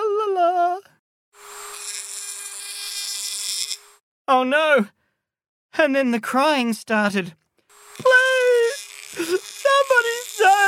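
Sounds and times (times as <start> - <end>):
dentist's drill whirring: 1.4 - 4.0, 7.7 - 10.6
speech: 4.3 - 5.0, 5.8 - 7.4.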